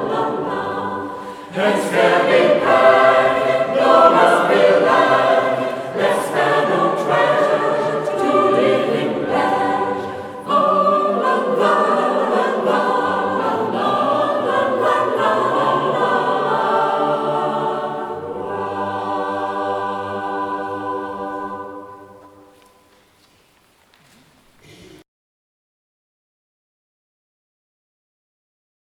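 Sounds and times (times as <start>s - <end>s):
vocal ensemble singing: 0.0s - 23.2s.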